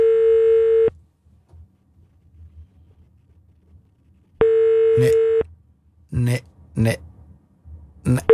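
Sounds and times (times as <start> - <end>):
telephone ringback tones, call not answered: 0.0 - 0.9, 4.4 - 5.4
man's voice: 8.1 - 8.3.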